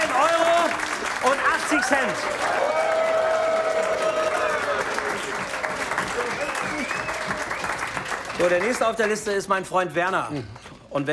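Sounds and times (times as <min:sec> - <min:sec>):
crowd voices and cheering: 0:00.0 - 0:08.8
audience applause: 0:00.0 - 0:09.4
speech: 0:01.8 - 0:02.8, 0:08.4 - 0:11.1.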